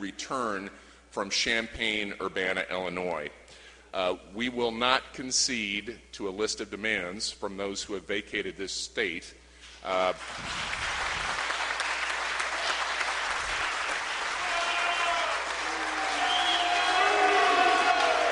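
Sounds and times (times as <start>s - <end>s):
speech: 0.0s - 10.9s
House members applauding in a legislative chamber: 10.2s - 18.3s.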